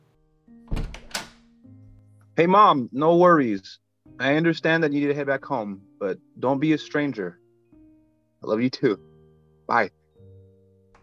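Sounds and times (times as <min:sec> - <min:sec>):
front door lock clunks as it is unlocked: 0:00.7 - 0:01.4
speech: 0:02.4 - 0:07.4, 0:08.4 - 0:09.1, 0:09.7 - 0:10.0.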